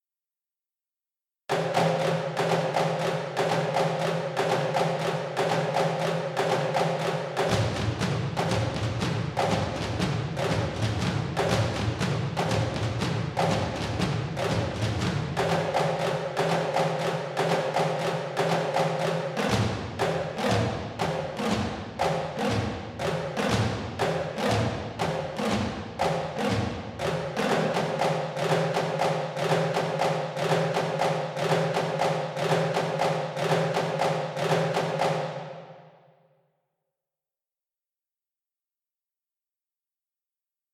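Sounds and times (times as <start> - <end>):
drums: 1.5 - 35.5.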